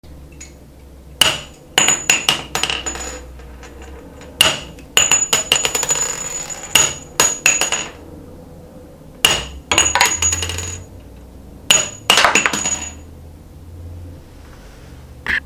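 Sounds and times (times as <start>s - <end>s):
handgun shell casings dropping: 1.2s - 8.0s, 9.3s - 10.9s, 11.7s - 13.0s.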